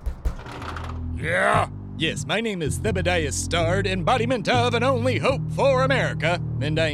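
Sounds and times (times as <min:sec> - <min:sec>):
rapid knocking on a door: 0:00.2 - 0:01.1
speech: 0:01.2 - 0:06.9.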